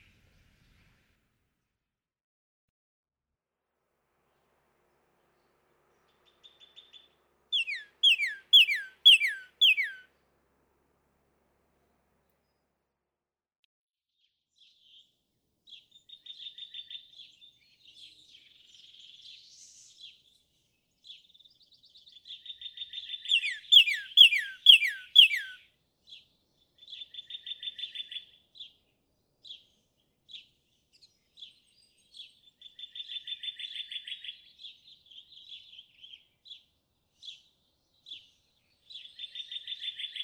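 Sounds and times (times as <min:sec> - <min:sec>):
Northern Cardinal singing: 0:06.0 - 0:10.1, 0:15.7 - 0:40.2.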